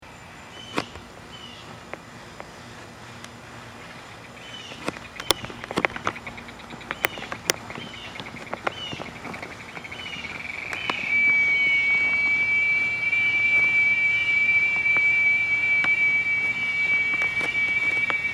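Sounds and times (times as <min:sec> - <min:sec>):
cicada buzzing call: 0:00.0 - 0:18.3.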